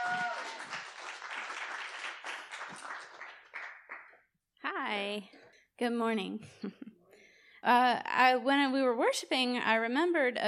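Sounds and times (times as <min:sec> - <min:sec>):
church congregation clapping to welcome a guest speaker: 0:00.0 - 0:04.2
speech: 0:05.2 - 0:06.9, 0:07.6 - 0:10.4.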